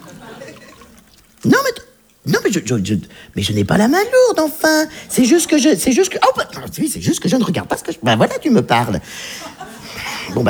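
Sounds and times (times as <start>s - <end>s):
laughter: 0.0s - 1.7s, 4.7s - 10.4s
drink pouring into a glass: 0.0s - 2.3s
low talk: 1.3s - 10.4s
speech: 1.4s - 9.6s, 10.3s - 10.4s.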